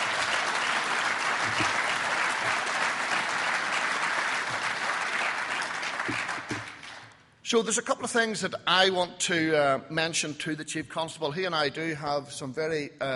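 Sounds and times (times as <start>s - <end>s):
audience applause: 0.0s - 7.2s
speech: 7.5s - 13.1s.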